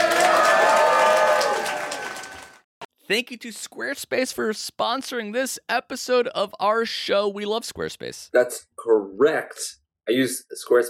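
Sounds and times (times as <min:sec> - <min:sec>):
crowd applause: 0:00.0 - 0:02.6
speech: 0:03.1 - 0:10.8.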